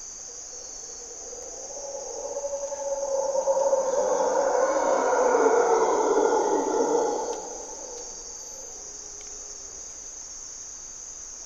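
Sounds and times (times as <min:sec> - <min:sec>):
high-pitched insect buzz: 0:00.0 - 0:11.4
mantled howler monkeys roaring: 0:00.5 - 0:09.8.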